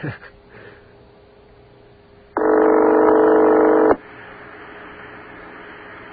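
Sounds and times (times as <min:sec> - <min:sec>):
telephone ringing tone on a call: 0:02.4 - 0:04.0.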